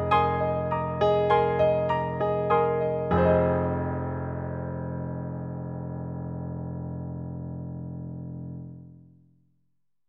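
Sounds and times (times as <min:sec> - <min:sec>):
SD-90 contemporary acoustic piano: 0:00.0 - 0:08.9.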